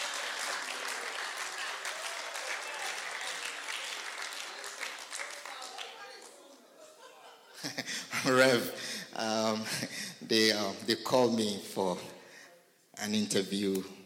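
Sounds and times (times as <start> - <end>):
audience clapping: 0.0 - 6.7
laughter: 0.0 - 8.8
speech: 7.7 - 12.2, 13.0 - 14.0.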